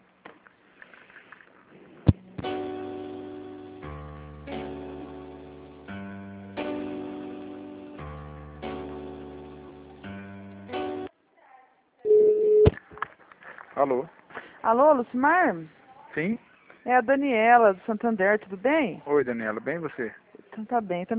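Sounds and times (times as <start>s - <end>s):
telephone tones while a call is transferred: 12.1s - 12.7s
speech: 13.8s - 21.1s.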